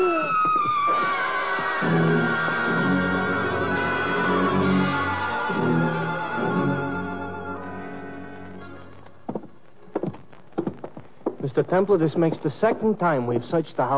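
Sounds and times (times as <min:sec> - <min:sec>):
woman screaming: 0:00.0 - 0:00.6
sustained tonal drone: 0:00.8 - 0:08.8
speech: 0:11.6 - 0:13.9.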